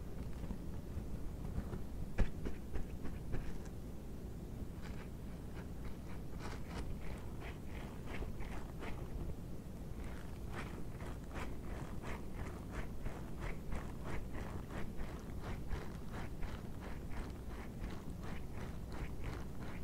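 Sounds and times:
dishwashing gloves scratching: 0:00.2 - 0:03.8, 0:04.7 - 0:19.8.

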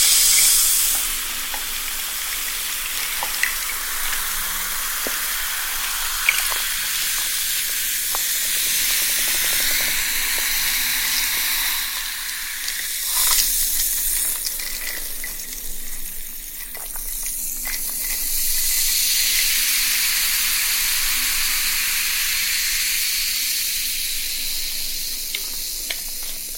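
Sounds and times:
sparkling soda water fizzing: 0:00.0 - 0:26.5.

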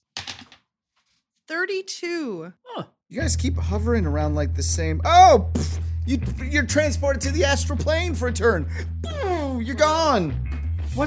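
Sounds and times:
dice rolled during a tabletop game turn: 0:00.1 - 0:00.6
speech: 0:01.5 - 0:11.0.

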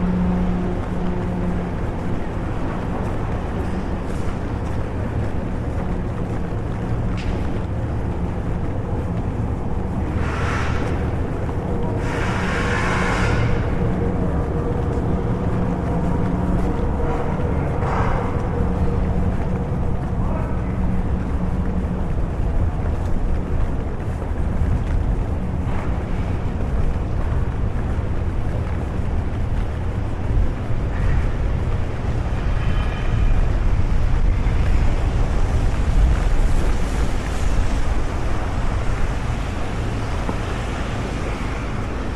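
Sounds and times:
traffic rumble and hiss in London rain: 0:00.0 - 0:42.1.

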